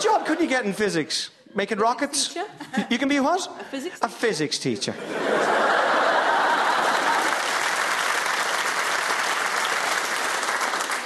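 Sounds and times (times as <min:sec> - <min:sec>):
speech: 0:00.3 - 0:05.8
laughter: 0:02.5 - 0:03.2, 0:04.9 - 0:07.6
audience applause: 0:05.7 - 0:11.0.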